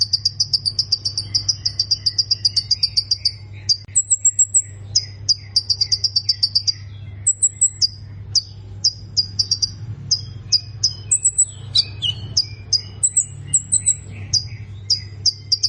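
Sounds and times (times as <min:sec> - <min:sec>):
low background hum: 0:00.0 - 0:15.6
plain prinia singing: 0:00.0 - 0:15.6.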